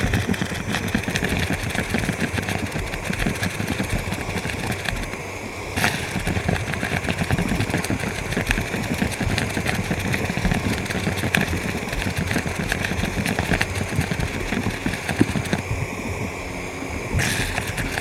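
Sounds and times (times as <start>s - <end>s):
mudpot bubbling: 0.0s - 17.9s.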